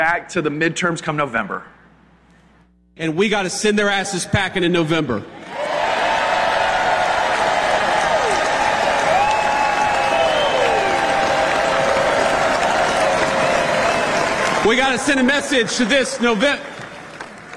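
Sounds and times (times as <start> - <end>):
speech: 0.0 - 1.8, 3.0 - 5.4, 14.6 - 16.8
audience applause: 5.4 - 17.5.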